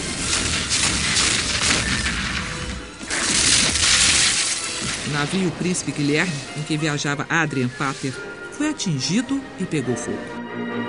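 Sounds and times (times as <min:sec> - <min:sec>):
cannons firing in naval battle: 0:00.0 - 0:06.1
speech: 0:05.2 - 0:10.8.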